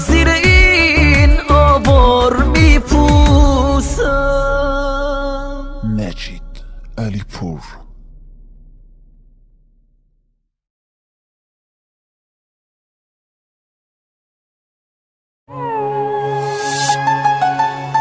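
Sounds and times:
sad Persian song: 0.0 - 9.5, 15.5 - 17.9.

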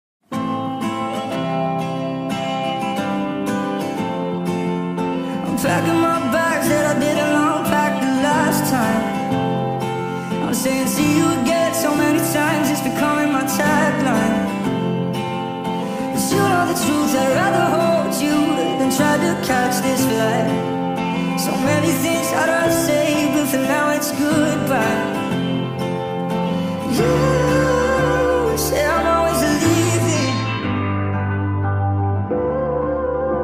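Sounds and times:
sped-up reverb track: 0.4 - 33.4.

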